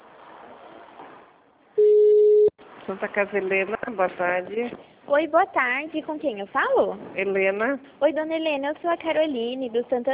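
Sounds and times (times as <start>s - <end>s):
telephone tone during call transfer through a hospital switchboard phone menu: 1.8s - 2.6s
speech: 2.9s - 10.1s.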